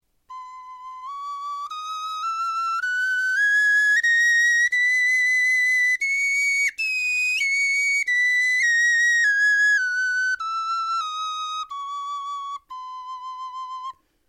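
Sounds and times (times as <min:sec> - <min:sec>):
bone flutes playing a scale: 0:00.3 - 0:14.0.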